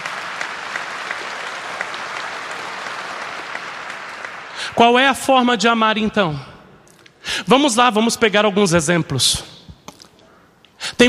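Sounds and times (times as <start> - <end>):
applause: 0.0 - 4.8
speech: 4.7 - 6.5, 7.4 - 9.5.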